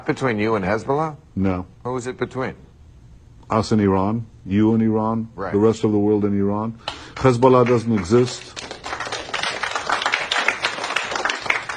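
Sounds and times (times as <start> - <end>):
speech: 0.0 - 2.7, 3.5 - 8.6
audience clapping: 6.9 - 11.7.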